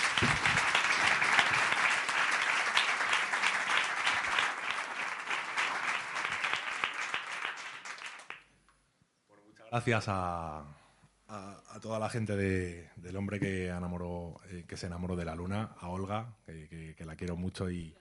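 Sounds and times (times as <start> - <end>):
audience applause: 0.0 - 8.4
speech: 9.7 - 17.9.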